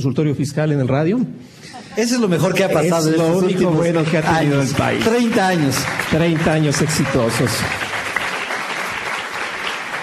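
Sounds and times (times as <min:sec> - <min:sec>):
speech: 0:00.0 - 0:07.9
audience applause: 0:03.4 - 0:10.0.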